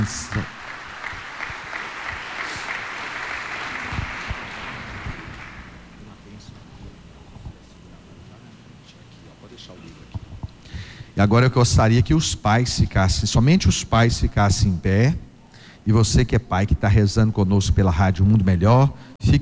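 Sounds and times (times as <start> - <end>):
audience applause: 0.0 - 6.0
speech: 11.2 - 19.4.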